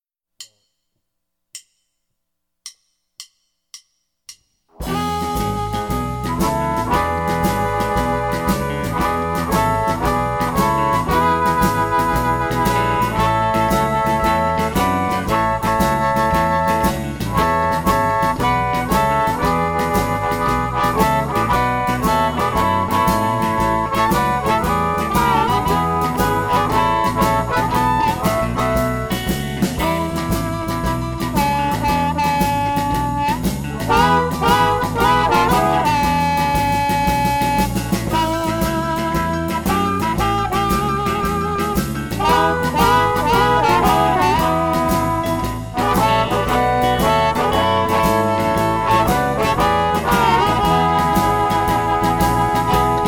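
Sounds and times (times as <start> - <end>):
easy harmonica harmonies in E: 4.8 - 53.0.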